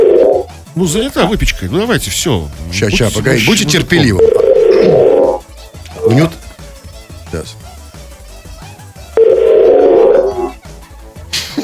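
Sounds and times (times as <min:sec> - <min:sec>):
telephone ringing tones: 0:00.0 - 0:00.5, 0:03.8 - 0:05.4, 0:09.2 - 0:10.5
speech: 0:00.8 - 0:05.1, 0:06.1 - 0:06.4, 0:07.4 - 0:07.7.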